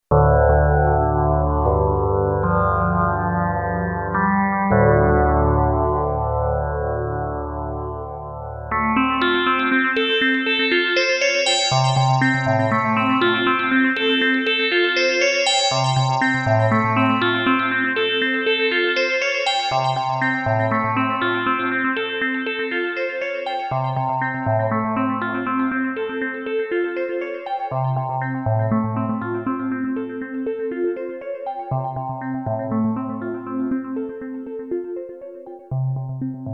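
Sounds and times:
wavetable formant synth: 0:00.1 - 0:36.5.

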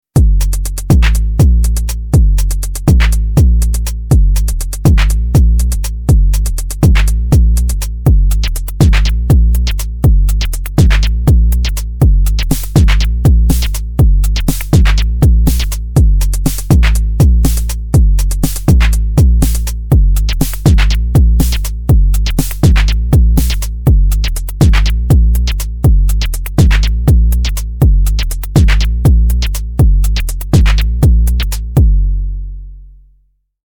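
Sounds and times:
MFB Tanzmaus drum machine LFO modulation: 0:00.2 - 0:32.0.

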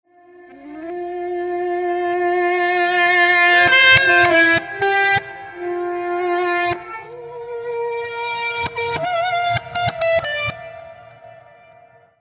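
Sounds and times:
reversed melodic guitar pulses and phrases: 0:00.1 - 0:12.1.

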